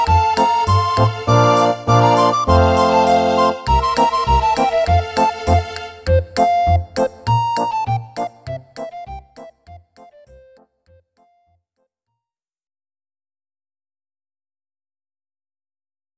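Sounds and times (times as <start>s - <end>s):
polka dance music: 0.0s - 10.6s.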